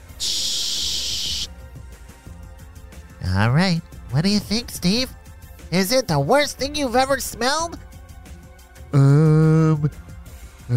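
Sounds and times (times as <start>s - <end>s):
test spray from a sprayer: 0.0s - 1.5s
speech: 3.3s - 7.8s, 8.9s - 10.0s.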